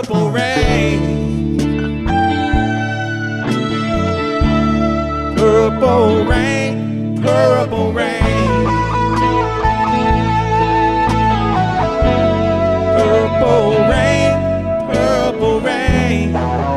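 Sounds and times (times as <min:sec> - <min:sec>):
country rock band playing: 0:00.1 - 0:16.7.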